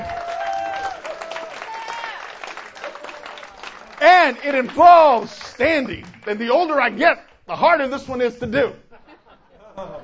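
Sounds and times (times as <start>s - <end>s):
audience clapping: 0.0s - 8.0s
speech: 4.2s - 8.8s
laughter: 8.9s - 10.0s.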